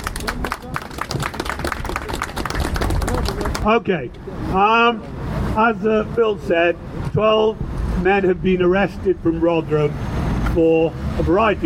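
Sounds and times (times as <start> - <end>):
audience applause welcoming a speaker at a defence campaign meeting: 0.0 - 3.7
speech: 3.6 - 11.6.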